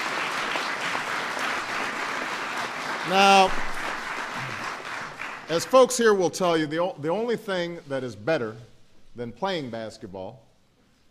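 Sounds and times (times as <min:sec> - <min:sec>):
audience applause: 0:00.0 - 0:05.8
speech: 0:03.1 - 0:03.7, 0:05.5 - 0:10.4.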